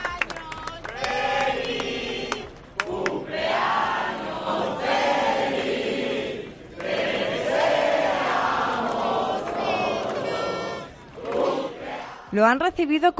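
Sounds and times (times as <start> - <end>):
crowd applauding: 0.0 - 3.2, 6.8 - 11.7
crowd singing a birthday song: 0.0 - 12.3
speech: 12.4 - 13.1.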